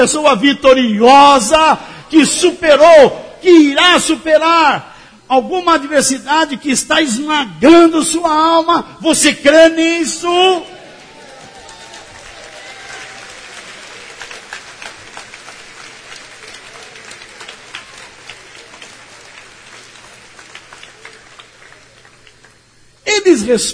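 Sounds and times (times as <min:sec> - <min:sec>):
speech: 0:00.0 - 0:10.8, 0:23.2 - 0:23.7
audience clapping: 0:10.8 - 0:22.9.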